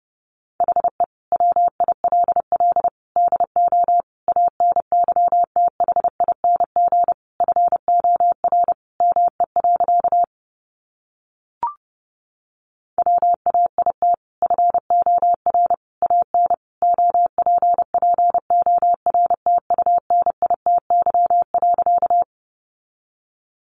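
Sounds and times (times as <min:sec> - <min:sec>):
Morse code beeps at 30wpm: 0:00.6 - 0:10.3, 0:13.0 - 0:22.3.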